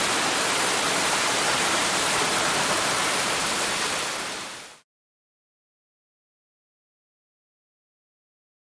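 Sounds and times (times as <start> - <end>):
very heavy rain: 0.0 - 4.8.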